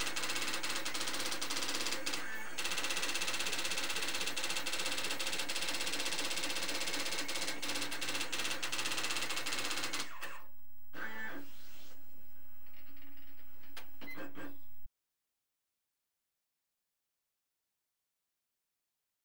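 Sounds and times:
typewriter typing: 0.0 - 10.4, 12.6 - 14.6
computers: 0.0 - 14.9
telex machine: 0.0 - 14.9.

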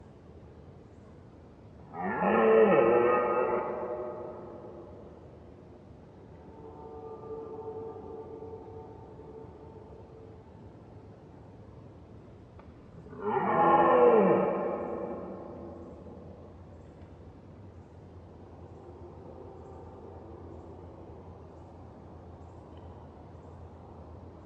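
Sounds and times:
red deer roaring: 1.9 - 4.4, 13.1 - 16.4.

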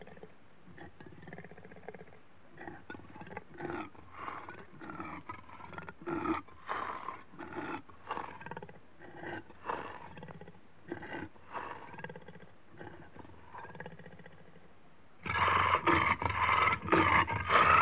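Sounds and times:
leopard in Africa growling with harsh rasping snarls: 0.0 - 14.6, 15.2 - 17.7.

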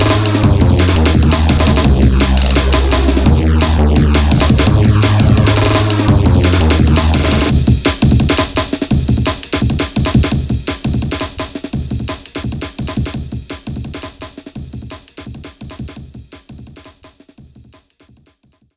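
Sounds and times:
glitchy drum and bass music: 0.0 - 14.2.

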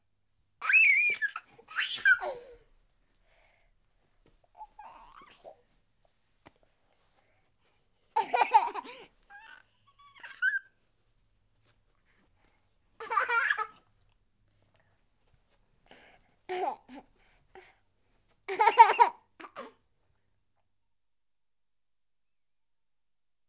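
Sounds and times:
month old baby boy chesty laughing: 0.6 - 2.6, 8.2 - 9.1, 13.0 - 13.8, 18.5 - 19.7.

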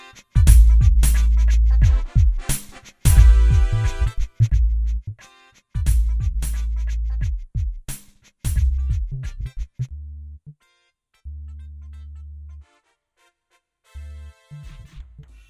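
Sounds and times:
urban funk music: 0.0 - 10.6, 13.9 - 15.4.

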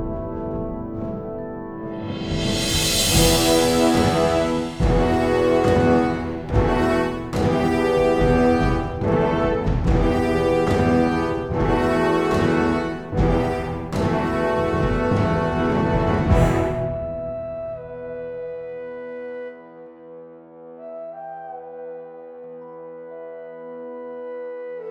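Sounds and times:
sudden orchestral defeat sting: 0.1 - 18.2.

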